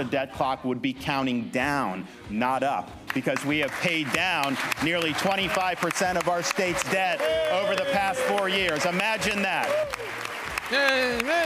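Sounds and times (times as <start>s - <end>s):
speech: 0.0s - 11.4s
audience applause at a speech: 3.2s - 11.4s.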